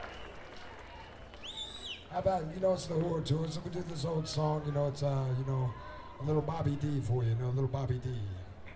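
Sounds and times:
soft scattered applause from a small crowd: 0:00.0 - 0:04.4
speech: 0:02.1 - 0:08.5.

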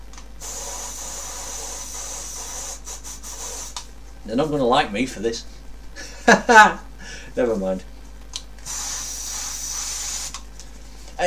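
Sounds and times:
aerosol air freshener spraying: 0:00.4 - 0:03.9, 0:08.6 - 0:10.4
speech: 0:04.2 - 0:05.6, 0:06.3 - 0:06.8, 0:07.4 - 0:07.9.

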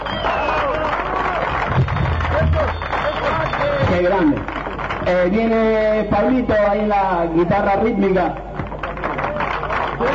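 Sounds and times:
audience applause: 0:00.0 - 0:05.3, 0:08.7 - 0:10.1
speech: 0:04.0 - 0:08.4, 0:10.0 - 0:10.1.

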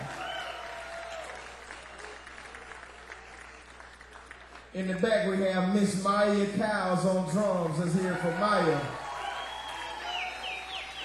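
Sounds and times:
audience applause: 0:00.0 - 0:04.8, 0:07.6 - 0:11.0
speech: 0:04.7 - 0:08.9.

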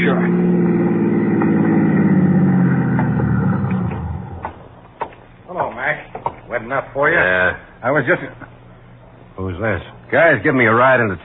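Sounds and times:
car engine rumbling pulling into a toll plaza: 0:00.0 - 0:04.8
speech: 0:06.7 - 0:08.5, 0:09.4 - 0:11.2.

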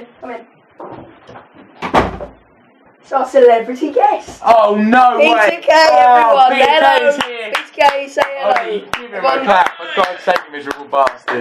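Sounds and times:
speech: 0:03.1 - 0:11.3
clapping: 0:07.1 - 0:11.3.

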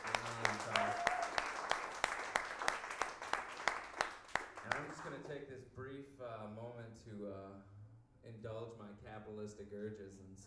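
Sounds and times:
voice cheering: 0:00.0 - 0:01.7
audience applause: 0:00.0 - 0:05.3
speech: 0:05.1 - 0:10.4.

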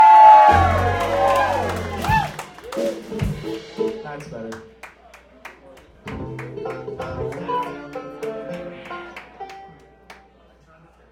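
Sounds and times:
crowd cheering and whooping for the bass player: 0:00.0 - 0:03.0.

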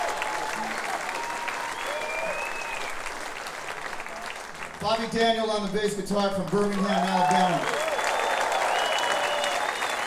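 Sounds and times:
audience applause: 0:00.0 - 0:10.0
whistles: 0:01.7 - 0:03.0, 0:07.8 - 0:10.0
speech: 0:04.8 - 0:07.8.

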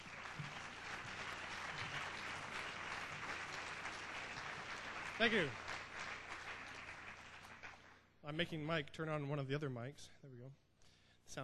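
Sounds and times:
crowd applauding: 0:00.0 - 0:08.1
speech: 0:05.2 - 0:05.7, 0:08.3 - 0:10.6.

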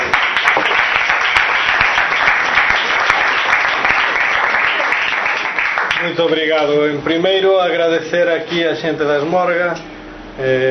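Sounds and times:
applause: 0:00.0 - 0:06.6
speech: 0:06.2 - 0:10.7.

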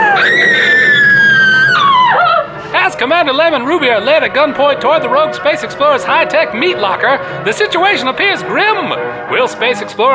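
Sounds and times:
woman screaming in a science-fiction audio drama: 0:00.0 - 0:02.5
speech: 0:03.0 - 0:10.1.

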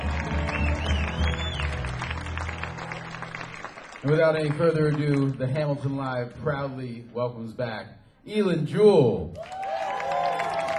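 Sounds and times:
audience applause: 0:00.0 - 0:05.4, 0:09.4 - 0:10.7
speech: 0:04.0 - 0:09.5.

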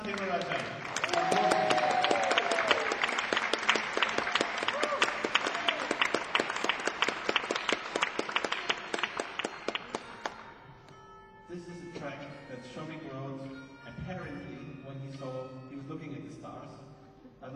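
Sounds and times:
audience applauding musicians returning for a final track: 0:00.0 - 0:10.5.

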